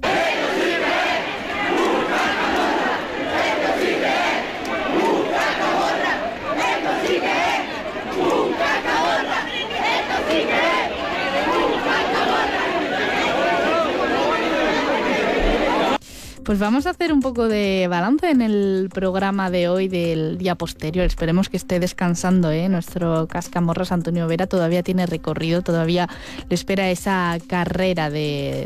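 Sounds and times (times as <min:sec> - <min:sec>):
large festival crowd shouting and cheering: 0:00.0 - 0:16.0
speech: 0:16.5 - 0:28.6.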